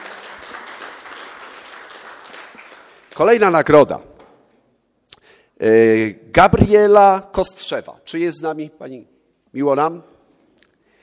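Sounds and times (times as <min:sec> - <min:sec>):
audience applause at an awards ceremony in Wołomin, Poland: 0:00.0 - 0:03.2
speech: 0:03.2 - 0:04.1, 0:05.6 - 0:10.1.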